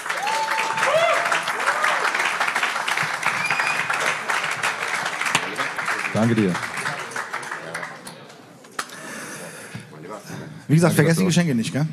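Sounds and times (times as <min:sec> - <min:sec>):
audience applause: 0:00.0 - 0:08.5
voices whooping: 0:00.1 - 0:02.1
speech: 0:06.2 - 0:06.7, 0:10.7 - 0:11.9.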